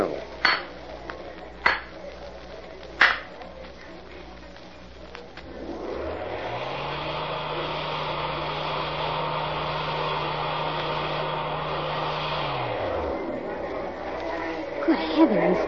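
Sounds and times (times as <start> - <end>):
motorized hidden mine wall swinging open: 5.4 - 15.6.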